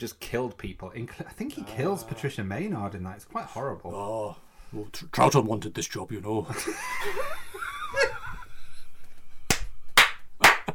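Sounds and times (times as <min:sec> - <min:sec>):
speech: 0:00.0 - 0:08.2
laughter: 0:06.4 - 0:08.9
applause: 0:09.5 - 0:10.7.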